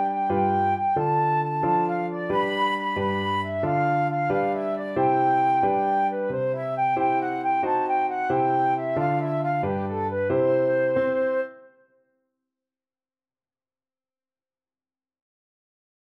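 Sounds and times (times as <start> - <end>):
flute melody: 0.0 - 11.9.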